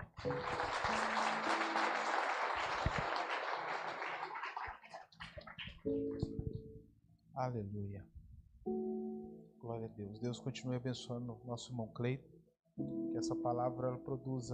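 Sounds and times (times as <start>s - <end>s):
audience applause: 0.0s - 6.2s
speech: 0.2s - 0.6s, 5.8s - 6.2s, 7.4s - 8.8s, 9.7s - 14.5s.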